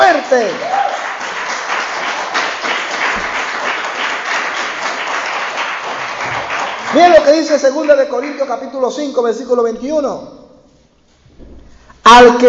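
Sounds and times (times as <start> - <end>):
audience applause: 0.0 - 7.9
speech: 0.3 - 0.8, 6.9 - 10.4, 12.1 - 12.4.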